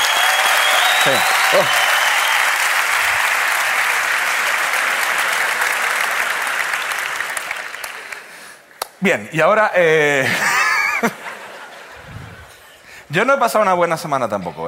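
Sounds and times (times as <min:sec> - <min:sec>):
vocal whoops: 0:00.0 - 0:02.3
loud audience applause: 0:00.0 - 0:08.4
speech: 0:01.0 - 0:01.9, 0:09.0 - 0:11.2, 0:13.2 - 0:14.6
laughter: 0:10.2 - 0:12.8.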